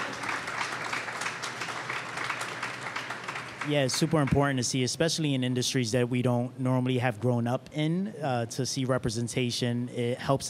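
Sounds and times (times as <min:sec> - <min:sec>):
audience applause: 0:00.0 - 0:04.7
speech: 0:03.6 - 0:10.4.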